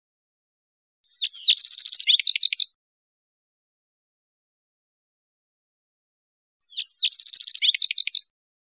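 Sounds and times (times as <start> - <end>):
Yellow-eyed junco song phrases: 1.0 - 2.8, 6.6 - 8.3.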